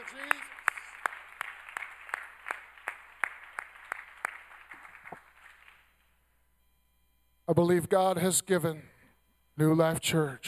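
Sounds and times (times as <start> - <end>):
audience clapping hands: 0.0 - 6.2
speech: 7.5 - 8.9, 9.6 - 10.4.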